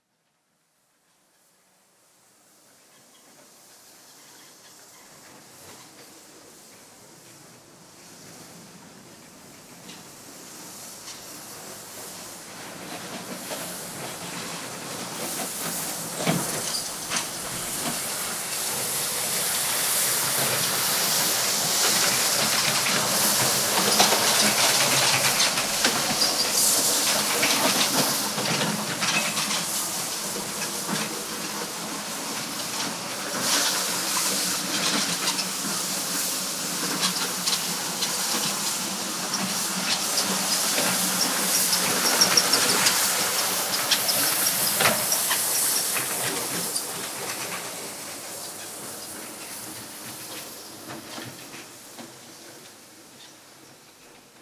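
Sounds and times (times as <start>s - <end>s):
pavement washer: 10.6s - 52.3s.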